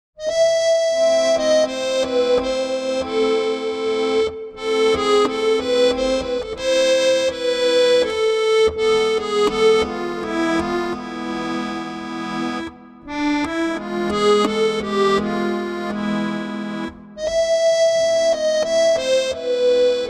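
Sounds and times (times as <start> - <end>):
musette music: 0.2 - 20.0.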